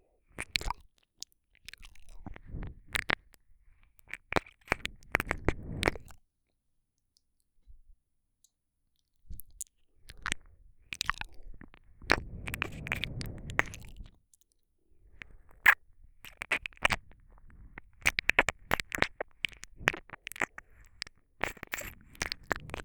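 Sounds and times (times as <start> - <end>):
ear licking ASMR: 4.0 - 6.1, 10.1 - 14.1, 15.1 - 22.8
ear cleaning ASMR: 12.1 - 13.8, 15.2 - 22.8.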